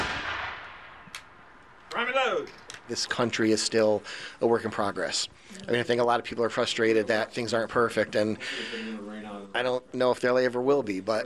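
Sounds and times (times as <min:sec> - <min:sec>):
gunshot crack: 0:00.0 - 0:01.6
ceremonial rifle volley at a Liberty Tree ceremony: 0:00.0 - 0:02.9
speech: 0:02.0 - 0:11.2.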